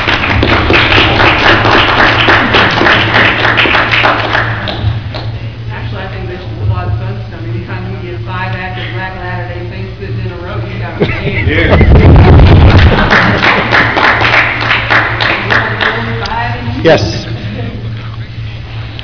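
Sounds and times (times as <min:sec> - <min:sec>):
audience clapping: 0:00.0 - 0:05.4, 0:11.6 - 0:16.3
laughter: 0:10.8 - 0:14.2, 0:17.3 - 0:18.2
speech: 0:16.8 - 0:17.2.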